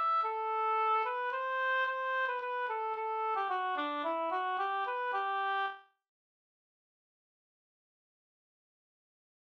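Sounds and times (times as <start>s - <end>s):
polka music: 0.0s - 5.8s.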